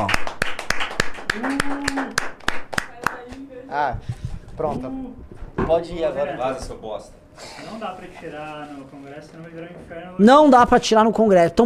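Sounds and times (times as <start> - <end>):
audience clapping in unison on a live show: 0.0 - 3.4
speech: 1.3 - 2.4, 3.7 - 11.6.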